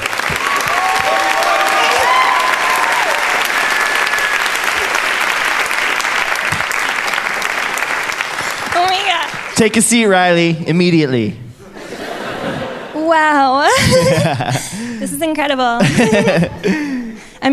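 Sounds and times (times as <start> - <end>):
talk show studio audience applauding: 0.0 - 10.4
speech: 9.6 - 11.4, 13.2 - 17.5
laughter: 11.6 - 17.2.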